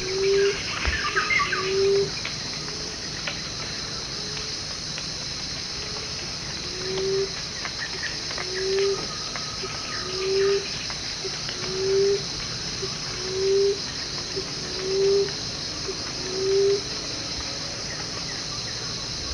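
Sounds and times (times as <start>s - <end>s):
emerald dove calling: 0.0s - 2.2s, 6.7s - 16.8s.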